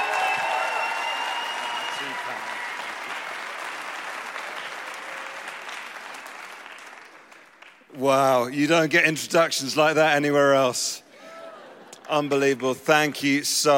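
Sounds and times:
audience applause and cheering welcoming a speaker: 0.0 - 7.9
speech: 8.0 - 11.0, 12.1 - 13.7.

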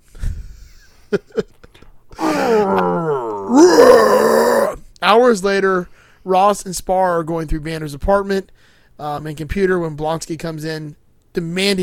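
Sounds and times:
speech: 1.1 - 1.6, 5.3 - 11.8
monster's victory roar: 2.2 - 4.8.

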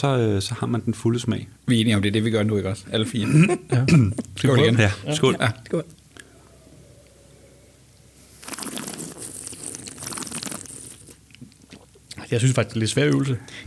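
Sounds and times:
speech: 0.0 - 6.0, 12.3 - 13.6
slurping wine while sucking in air: 5.5 - 12.9.

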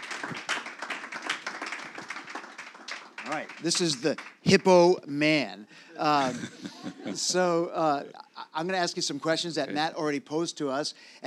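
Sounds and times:
round of applause: 0.0 - 5.0
speech: 3.3 - 11.2
laughter: 6.0 - 8.6.

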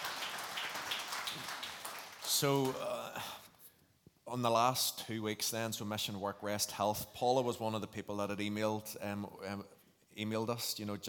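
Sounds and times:
audience applause: 0.0 - 2.8
speech: 2.4 - 3.3, 4.3 - 11.0.

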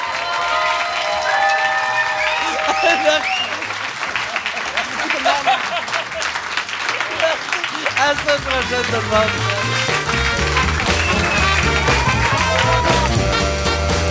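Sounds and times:
audience applause: 0.0 - 14.0
laughter: 2.3 - 9.3, 10.6 - 13.2
speech: 2.9 - 3.5, 8.0 - 9.8.

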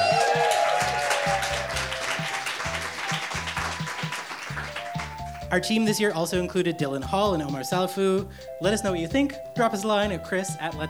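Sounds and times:
audience applause: 0.0 - 5.2
speech: 5.5 - 10.8.

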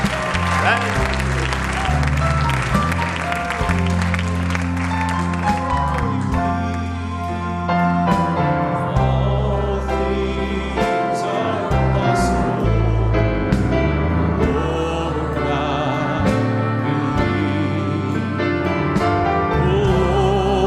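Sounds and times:
audience clapping: 0.0 - 6.9
organ or keyboard chords: 0.0 - 20.6.

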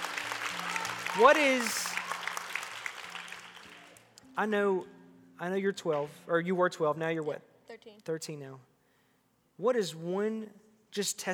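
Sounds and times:
audience applause: 0.0 - 4.2
person in the audience whooping: 0.6 - 2.4
speech: 1.2 - 1.8, 4.4 - 8.7, 9.6 - 11.3.

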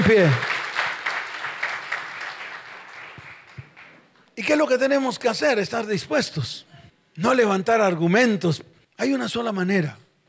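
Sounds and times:
audience applauding: 0.0 - 4.0
speech: 0.1 - 0.5, 4.5 - 10.0.

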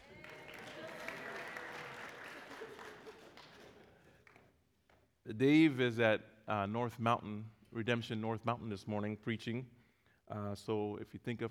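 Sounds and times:
hand clapping: 0.0 - 5.1
speech: 5.3 - 11.4.

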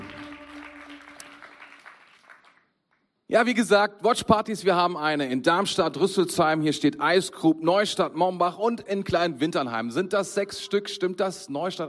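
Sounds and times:
audience applause for the band: 0.0 - 2.6
speech: 3.3 - 11.8.

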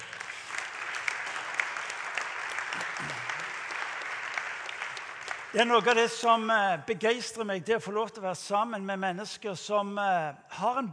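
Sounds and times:
audience applause: 0.0 - 6.2
speech: 5.5 - 10.9.

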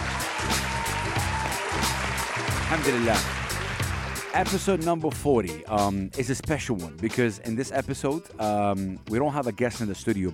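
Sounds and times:
applause: 0.0 - 4.9
speech: 2.7 - 3.4, 4.4 - 10.3.

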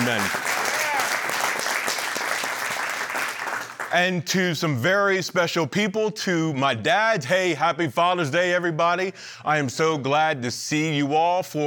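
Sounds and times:
crowd clapping: 0.0 - 4.0
speech: 0.1 - 0.5, 3.9 - 11.6.

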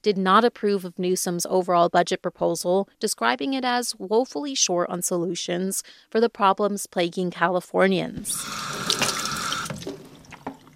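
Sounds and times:
speech: 0.0 - 9.2
running tap water as hands are washed at a sink: 8.2 - 10.7.

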